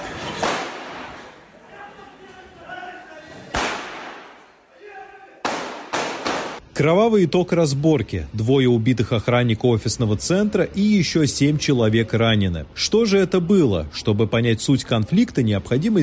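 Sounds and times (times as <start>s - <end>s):
gunshots: 0.4s - 1.3s, 3.5s - 4.5s, 5.4s - 6.6s
speech: 6.8s - 16.0s.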